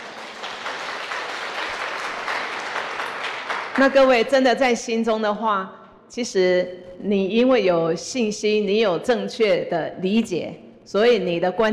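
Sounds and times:
crowd applause: 0:00.0 - 0:04.0
speech: 0:03.8 - 0:11.7.

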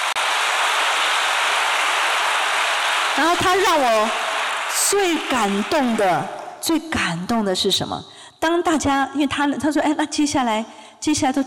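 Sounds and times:
audience applause: 0:00.0 - 0:06.6
speech: 0:03.2 - 0:04.2, 0:04.9 - 0:11.4.

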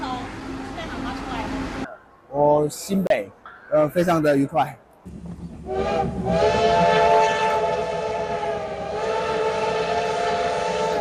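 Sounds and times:
passing steam train rumbling: 0:00.0 - 0:02.0, 0:05.0 - 0:10.9
speech: 0:02.4 - 0:07.1
steam locomotive whistle: 0:05.6 - 0:10.9.

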